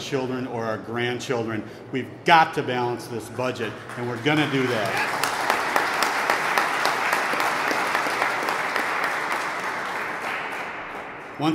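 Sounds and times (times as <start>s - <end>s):
speech: 0.1s - 5.3s
audience clapping: 3.5s - 11.5s.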